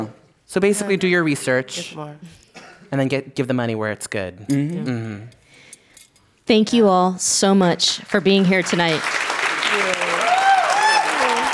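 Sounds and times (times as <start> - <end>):
speech: 0.0 - 5.4, 6.5 - 9.8
audience applause: 8.5 - 11.5.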